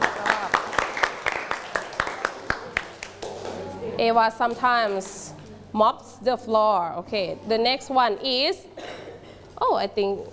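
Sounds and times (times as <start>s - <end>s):
class clapping hands: 0.0s - 3.6s
speech: 4.0s - 8.8s, 9.6s - 10.3s.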